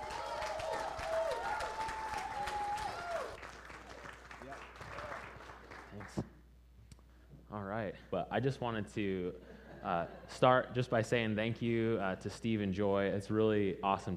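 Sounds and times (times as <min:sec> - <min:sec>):
sustained cheer or whistle: 0:00.0 - 0:03.4
crowd clapping: 0:00.0 - 0:06.2
speech: 0:07.6 - 0:14.1.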